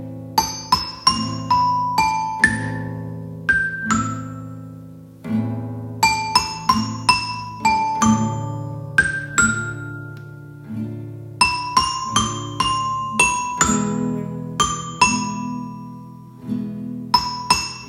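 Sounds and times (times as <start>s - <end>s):
metallophone: 0.3s - 17.8s.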